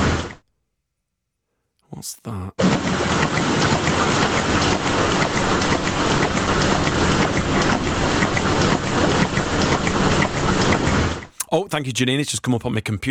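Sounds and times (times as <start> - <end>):
speech: 2.0 - 3.7, 11.5 - 13.1
milking machine pulsator in a milking parlour: 2.6 - 11.4.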